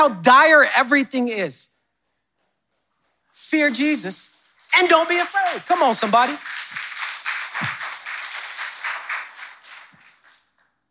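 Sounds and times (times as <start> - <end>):
speech: 0.0 - 1.7, 3.4 - 6.7
audience clapping: 4.3 - 10.8.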